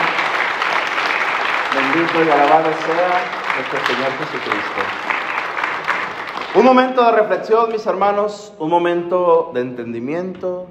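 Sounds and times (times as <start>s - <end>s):
loud applause: 0.0s - 7.3s
speech: 2.0s - 5.1s, 6.5s - 10.6s.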